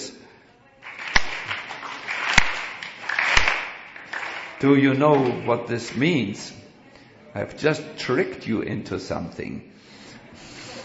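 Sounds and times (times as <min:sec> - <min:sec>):
hand clapping: 0:00.8 - 0:06.1
speech: 0:04.6 - 0:06.6, 0:07.4 - 0:09.7.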